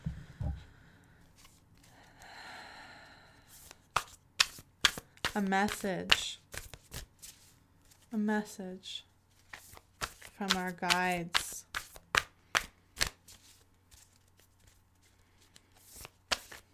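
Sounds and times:
mystical shaman oracle deck cards shuffled and drawn: 1.3 - 1.9, 3.5 - 8.0, 9.4 - 16.7
speech: 5.4 - 6.3, 8.1 - 9.1, 10.4 - 11.5.

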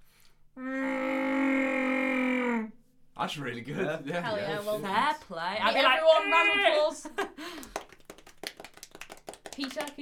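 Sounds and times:
person imitating Chewbacca's roar: 0.6 - 2.7
speech: 3.2 - 7.7, 9.6 - 10.0.

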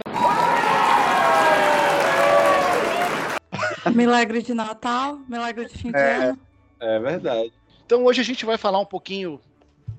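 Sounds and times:
crowd applause: 0.0 - 3.4
voices cheering: 0.0 - 3.4
speech: 3.9 - 9.5.

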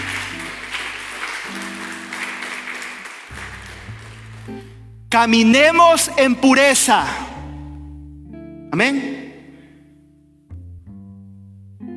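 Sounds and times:
audience applause: 0.0 - 4.7
speech: 4.5 - 7.3, 8.7 - 9.2.

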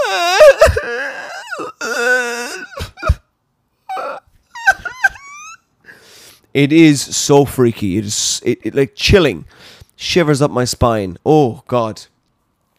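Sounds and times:
human voice imitating zombie groaning from a video game: 0.0 - 3.1
speech: 6.6 - 12.1.

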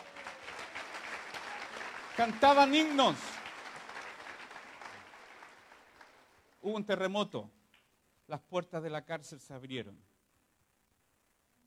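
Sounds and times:
audience applause: 0.0 - 6.4
speech: 2.2 - 3.3, 6.6 - 7.6, 8.3 - 10.1.

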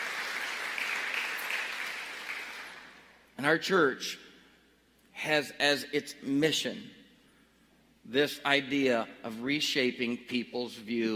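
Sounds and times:
audience applause: 0.0 - 2.9
speech: 3.4 - 4.2, 5.2 - 7.0, 8.1 - 11.1.

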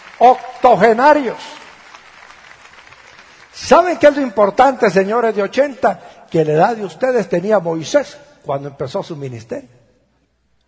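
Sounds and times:
audience applause: 0.0 - 4.3
speech: 0.2 - 1.6, 3.6 - 9.8.

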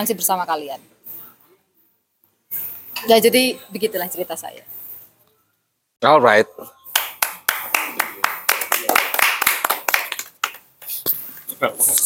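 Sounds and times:
speech: 0.0 - 1.0, 3.0 - 4.8, 6.0 - 6.8, 11.6 - 12.0
applause, hands clapping: 6.9 - 10.7.

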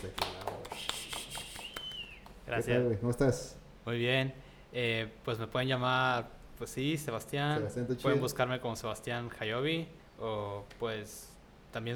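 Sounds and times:
speech: 0.0 - 0.2, 2.5 - 11.9
hands clapping in applause: 0.0 - 2.4.

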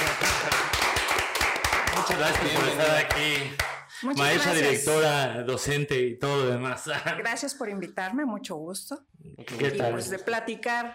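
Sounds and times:
laughter: 0.0 - 0.8
crowd applauding: 0.0 - 3.9
speech: 2.1 - 10.9.

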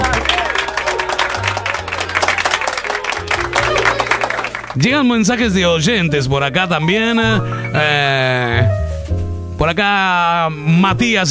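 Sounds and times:
applause: 0.0 - 4.9
speech: 4.8 - 8.8, 9.6 - 11.2.

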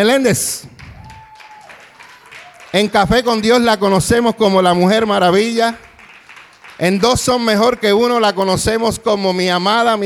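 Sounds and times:
speech: 0.0 - 0.7, 2.8 - 5.9, 6.8 - 10.0
crowd applause: 0.8 - 3.9, 5.4 - 8.4.

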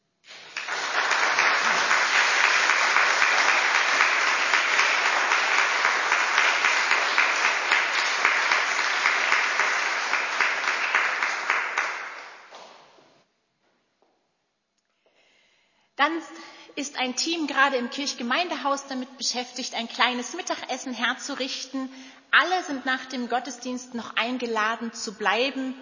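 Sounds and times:
audience applause: 0.3 - 12.7
speech: 16.0 - 25.8.

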